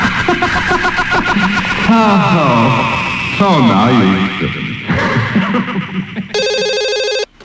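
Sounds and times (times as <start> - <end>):
loud noisy rumbling in a Halloween Radio app advert: 0.0 - 6.9
laughter: 0.0 - 7.2
speech: 2.0 - 4.6, 5.5 - 6.2
steady bright electronic telephone ring in a Halloween Radio app advert: 6.4 - 7.3.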